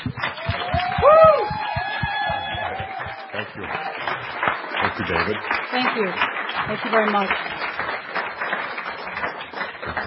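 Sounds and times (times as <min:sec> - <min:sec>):
low thumping: 0:00.0 - 0:03.4
audience applauding and cheering: 0:00.0 - 0:10.0
speech: 0:05.0 - 0:07.6.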